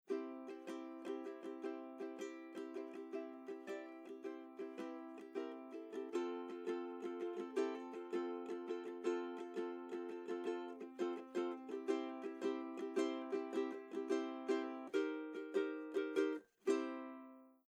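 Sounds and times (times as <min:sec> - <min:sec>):
ukulele recorded through Royer dBooster2 and ElectroVoice ND267S: 0:00.0 - 0:17.6.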